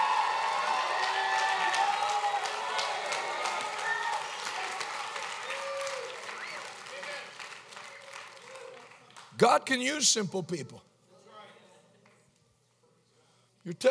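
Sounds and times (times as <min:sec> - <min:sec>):
crowd clapping: 0:00.0 - 0:09.5
speech: 0:09.4 - 0:10.9, 0:13.7 - 0:13.8.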